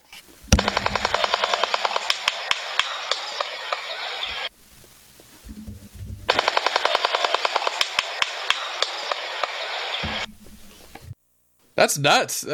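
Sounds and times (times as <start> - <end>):
bird bill clapping: 0.6 - 4.4, 6.3 - 10.3
speech: 11.8 - 12.5.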